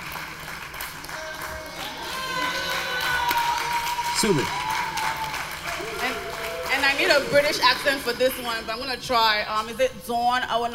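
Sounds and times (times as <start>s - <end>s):
audience applause: 0.0s - 8.3s
speech: 4.2s - 4.6s, 6.9s - 10.7s.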